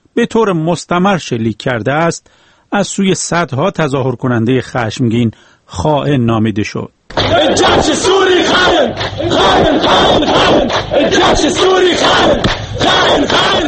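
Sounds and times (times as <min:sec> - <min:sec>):
speech: 0:00.2 - 0:13.6
crowd chanting protest slogans: 0:07.1 - 0:13.6.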